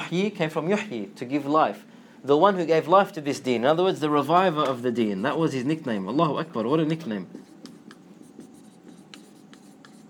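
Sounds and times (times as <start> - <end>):
speech: 0.1 - 7.5
scratchy strokes writing a word in Arabic: 7.2 - 10.0.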